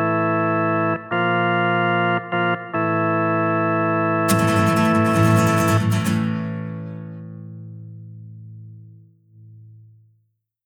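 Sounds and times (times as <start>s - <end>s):
organ music: 0.0s - 7.4s.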